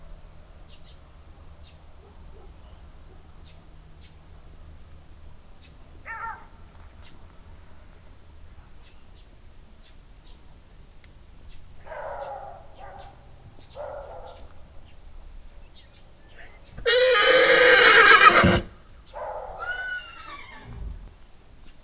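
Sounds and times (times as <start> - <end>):
horse neighing: 16.8 - 18.8, 19.6 - 21.3.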